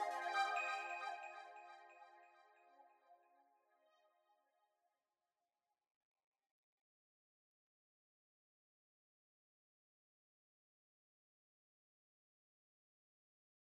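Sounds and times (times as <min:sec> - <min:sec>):
Juno106 synthesizer: 0:00.0 - 0:02.6.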